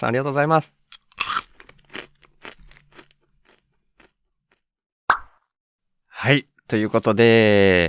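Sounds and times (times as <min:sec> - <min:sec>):
speech: 0:00.0 - 0:00.8, 0:06.3 - 0:07.8
crunchy snack balls being chewed: 0:00.9 - 0:04.6.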